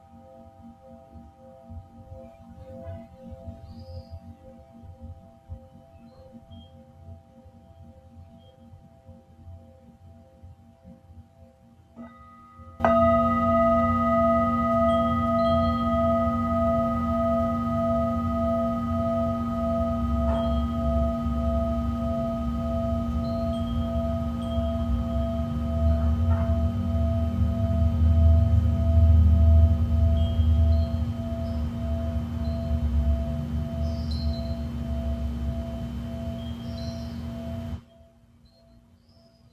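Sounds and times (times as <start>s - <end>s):
singing bowls ringing: 0.0s - 39.5s
deep low rumble: 15.6s - 37.8s.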